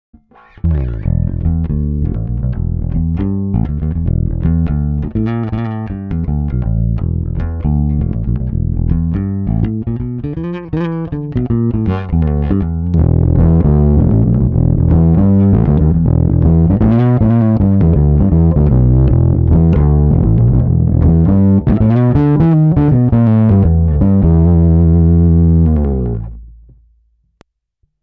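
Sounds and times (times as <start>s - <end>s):
fingerstyle guitar: 0.2s - 26.8s.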